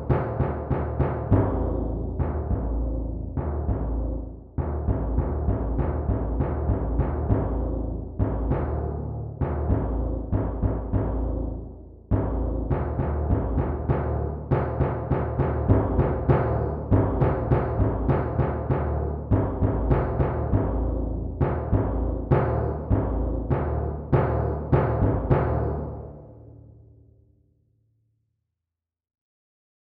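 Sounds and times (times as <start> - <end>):
timpani: 0.0 - 26.5.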